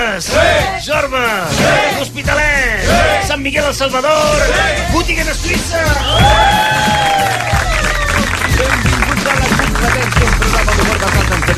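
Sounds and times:
crowd cheering with excited voices and shouts: 0.2s - 0.9s, 1.5s - 2.1s, 2.8s - 3.4s, 4.2s - 11.5s
speech: 0.2s - 8.0s
crowd clapping: 6.1s - 11.5s.

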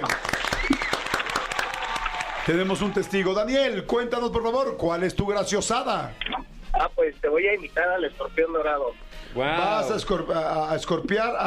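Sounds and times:
applause: 0.0s - 3.2s
speech: 2.4s - 11.4s.

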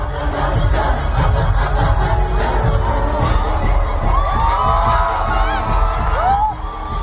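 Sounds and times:
stadium crowd singing and chanting: 0.0s - 7.0s
shrill cheers and whoops: 4.0s - 7.0s.

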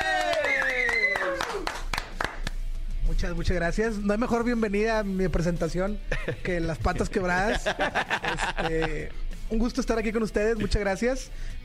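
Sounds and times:
person cheering: 0.0s - 1.8s
scattered applause for guest: 0.0s - 2.5s
speech: 3.2s - 11.6s
laughter: 6.1s - 6.6s, 7.3s - 9.1s.

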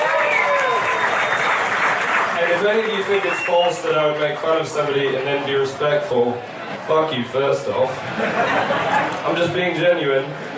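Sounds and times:
audience applause: 0.0s - 5.2s
speech: 2.6s - 10.5s
laughter: 7.8s - 10.5s.

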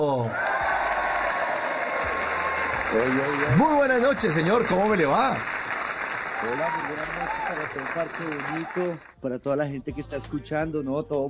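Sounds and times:
crowd applause: 0.3s - 9.1s
speech: 2.9s - 5.6s, 6.4s - 11.2s.

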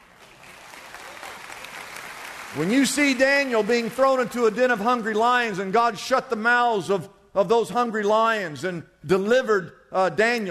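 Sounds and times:
audience clapping: 0.0s - 5.6s
speech: 2.5s - 10.4s.

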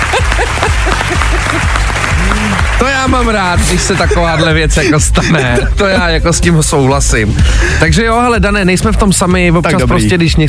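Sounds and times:
applause sound effect: 0.0s - 4.8s
laughter: 0.0s - 6.4s
speech: 2.8s - 10.4s.

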